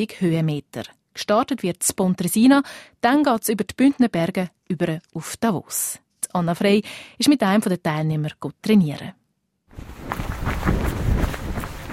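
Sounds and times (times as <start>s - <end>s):
speech: 0.0s - 9.2s
young man's footsteps jogging in the mountains near the Gotthard: 9.8s - 11.9s.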